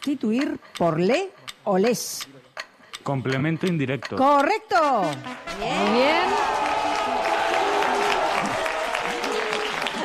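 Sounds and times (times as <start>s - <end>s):
speech: 0.0s - 2.4s, 3.0s - 6.6s
quiz show studio audience applauding: 5.5s - 10.0s.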